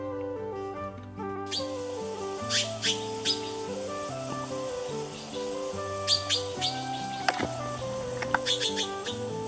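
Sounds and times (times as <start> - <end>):
music with low sustained notes: 0.0 - 9.4
magpie harsh chattering calls: 2.5 - 3.6, 5.1 - 7.4, 8.2 - 9.3.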